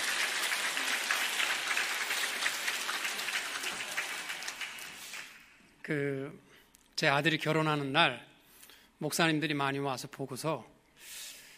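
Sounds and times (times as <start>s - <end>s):
audience applause: 0.0s - 5.5s
speech: 5.9s - 8.3s, 9.0s - 11.2s.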